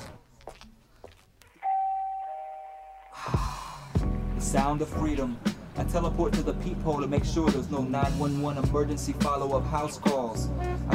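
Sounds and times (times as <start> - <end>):
doorbell two-tone chime: 1.6 - 3.3
speech: 4.5 - 10.9.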